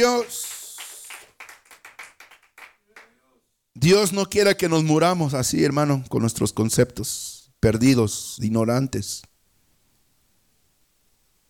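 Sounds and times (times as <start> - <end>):
speech: 0.0 - 0.4, 3.8 - 9.3
church congregation clapping hands during worship: 0.0 - 3.2.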